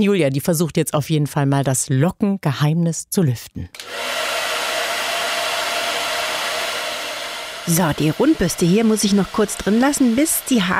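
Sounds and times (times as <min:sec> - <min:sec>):
speech: 0:00.0 - 0:04.3, 0:07.7 - 0:10.7
hair dryer blow-drying hair: 0:03.8 - 0:10.7.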